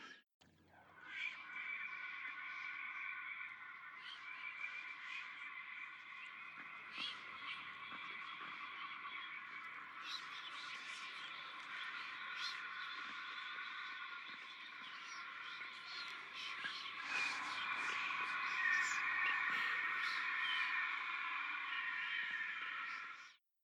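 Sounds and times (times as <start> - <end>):
swamp whispers: 1.1 - 23.1.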